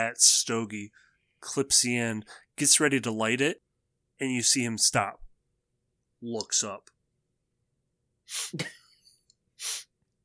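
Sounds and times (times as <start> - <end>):
speech: 0.0 - 3.6, 4.2 - 5.2, 6.2 - 7.0, 8.3 - 8.8
voiced nasal burst: 8.3 - 8.7, 9.6 - 9.9
sniffing: 9.6 - 9.9.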